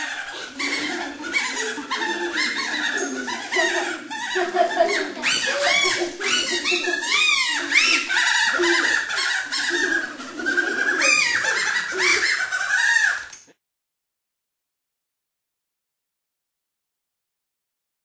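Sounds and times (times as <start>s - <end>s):
laugh made with an ivy leaf: 0.0s - 13.3s.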